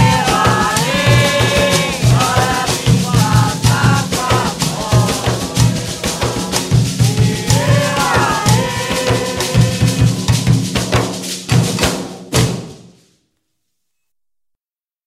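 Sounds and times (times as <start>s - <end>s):
toada devotional song: 0.0s - 11.3s.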